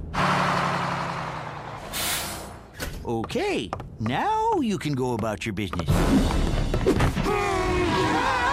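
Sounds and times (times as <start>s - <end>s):
bus braking to a complete stop: 0.1s - 2.9s
bus air-brake hiss: 1.9s - 2.6s
speech: 3.1s - 8.4s.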